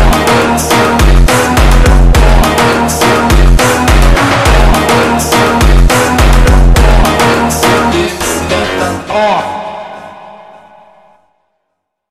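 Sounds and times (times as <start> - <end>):
slowed electronic music with reverb: 0.0 - 11.6.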